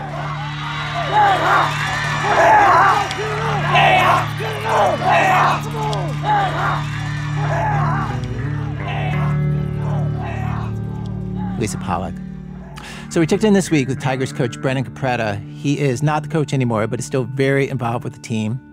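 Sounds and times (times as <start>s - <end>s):
crowd cheering and yelling at a football game: 0.0s - 12.8s
speech: 11.6s - 12.2s, 13.1s - 18.7s.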